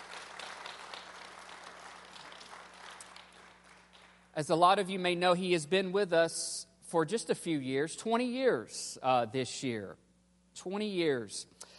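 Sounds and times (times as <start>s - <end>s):
crowd applauding: 0.0s - 4.3s
speech: 4.4s - 10.0s, 10.6s - 11.7s.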